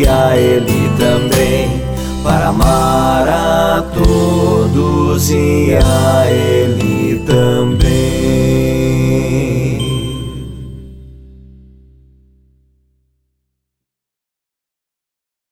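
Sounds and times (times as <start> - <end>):
Portuguese song: 0.0 - 11.7.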